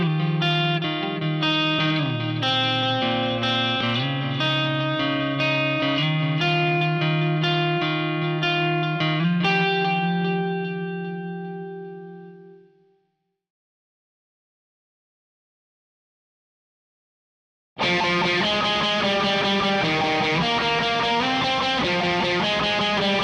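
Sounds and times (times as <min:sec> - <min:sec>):
guitar: 0:00.0 - 0:13.0, 0:17.8 - 0:23.2.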